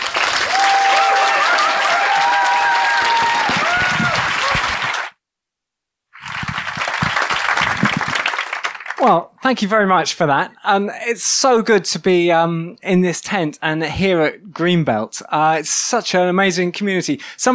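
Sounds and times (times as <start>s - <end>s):
audience applause: 0.0s - 5.2s, 6.2s - 9.2s
speech: 9.0s - 17.5s.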